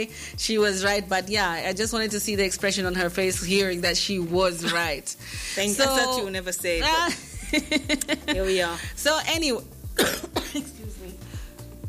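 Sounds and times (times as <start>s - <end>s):
speech: 0.0s - 11.2s
person choking coughs mid-speech: 10.0s - 10.7s.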